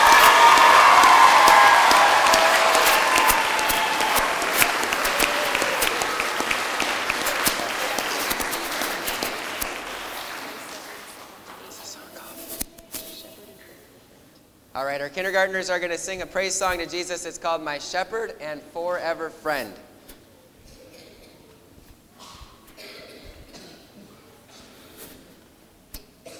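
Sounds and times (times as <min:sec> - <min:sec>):
audience applause: 0:00.0 - 0:11.6
speech: 0:14.8 - 0:19.9.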